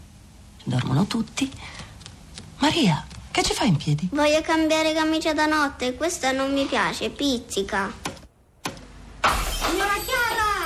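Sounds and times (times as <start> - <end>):
speech: 0.7 - 1.8, 2.6 - 8.1
chandelier falling and shattering: 9.2 - 10.6.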